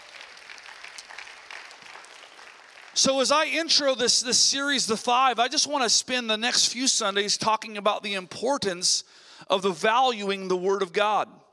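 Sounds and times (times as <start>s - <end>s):
church congregation applause during a Sunday sermon: 0.0s - 3.6s
speech: 3.0s - 11.4s.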